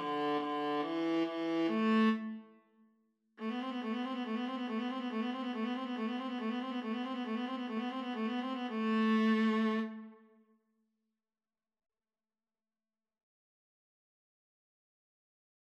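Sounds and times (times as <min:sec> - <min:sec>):
viola duet: 0:00.0 - 0:02.4, 0:03.4 - 0:10.2.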